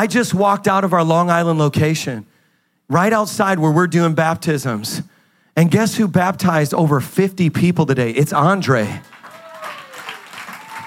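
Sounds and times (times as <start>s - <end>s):
speech: 0.0s - 2.3s, 2.9s - 9.1s
audience clapping: 9.0s - 10.8s
faint sustained vocal tone or cheer: 9.2s - 10.8s.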